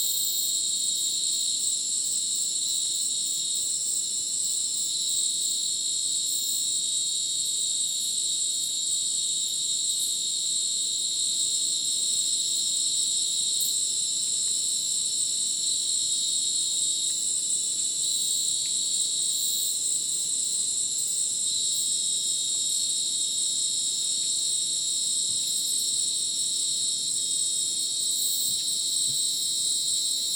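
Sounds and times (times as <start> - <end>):
crickets chirping in chorus: 0.0 - 30.3.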